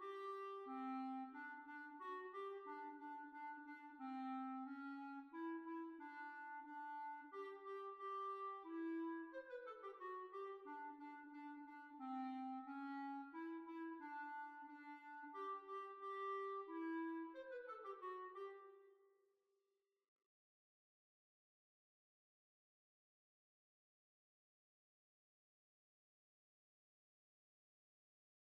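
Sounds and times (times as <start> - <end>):
hornpipe tune: 0.0 - 18.7.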